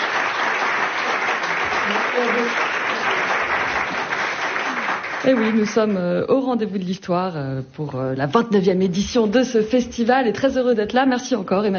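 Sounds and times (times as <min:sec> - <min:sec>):
live audience applause: 0:00.0 - 0:06.0
speech: 0:02.2 - 0:02.7, 0:05.2 - 0:11.7.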